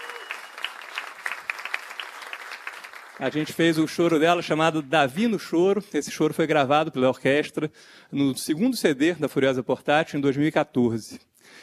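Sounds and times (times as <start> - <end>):
audience applause: 0.0 - 3.8
speech: 3.2 - 11.6.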